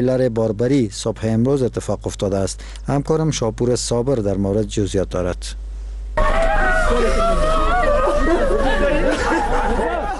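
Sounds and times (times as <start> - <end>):
speech: 0.0 - 5.6, 6.9 - 7.4
girl screaming in grief over her father's death: 6.2 - 8.9
laughter: 6.2 - 10.1.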